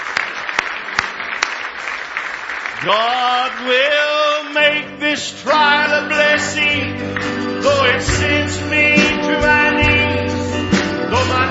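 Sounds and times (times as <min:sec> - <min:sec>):
audience hand clapping: 0:00.0 - 0:04.7, 0:05.5 - 0:08.2, 0:10.7 - 0:11.1
speech: 0:02.8 - 0:09.6.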